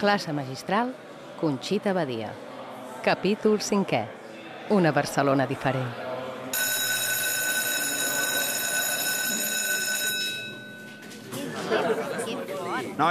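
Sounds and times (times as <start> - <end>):
speech: 0.0 - 6.6
students chattering in a classroom: 0.0 - 10.6, 11.2 - 13.0
high electronic ringing tone: 6.6 - 11.0
laughter: 11.2 - 13.0.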